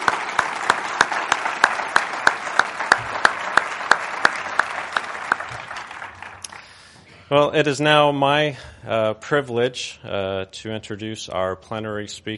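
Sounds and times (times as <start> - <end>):
conference audience applause: 0.0 - 6.9
speech: 7.3 - 12.3.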